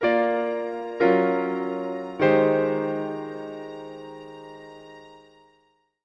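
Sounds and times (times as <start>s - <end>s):
piano pad music logo: 0.0s - 5.7s.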